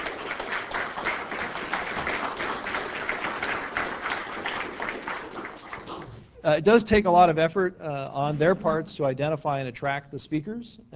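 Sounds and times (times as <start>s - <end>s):
audience applause: 0.0s - 6.2s
speech: 6.4s - 10.9s.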